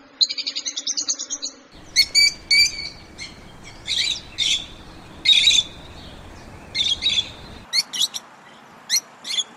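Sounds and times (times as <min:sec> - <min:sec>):
Fischer's lovebird chirping: 0:01.8 - 0:07.7.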